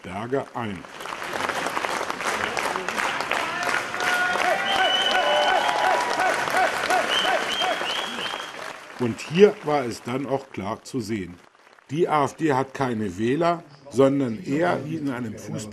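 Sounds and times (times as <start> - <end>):
speech: 0.2 - 1.1, 9.0 - 15.7
crowd cheering and applause as a politician enters a guesthouse: 0.7 - 10.4.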